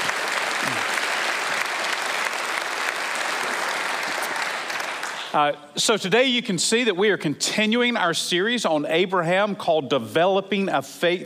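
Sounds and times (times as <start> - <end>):
audience clapping: 0.0 - 5.4
speech: 5.3 - 11.2.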